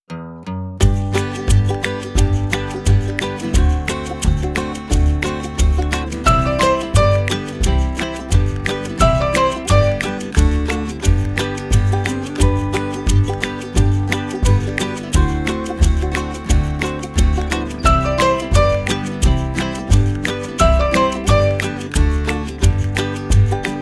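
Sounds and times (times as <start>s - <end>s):
English instrumental song: 0.1s - 23.8s.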